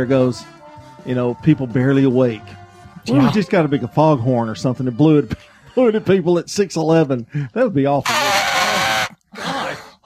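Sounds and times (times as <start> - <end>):
speech: 0.0 - 8.3
person imitating an elephant trumpeting: 8.0 - 10.0.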